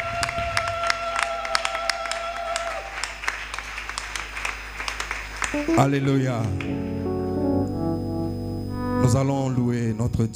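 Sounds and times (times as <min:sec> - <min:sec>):
church congregation cheering: 0:00.0 - 0:03.0
church congregation clapping during worship: 0:00.0 - 0:06.8
speech: 0:05.5 - 0:06.9, 0:09.0 - 0:10.3
sharp tonal accents: 0:05.6 - 0:09.9
sustained tone: 0:05.6 - 0:10.3.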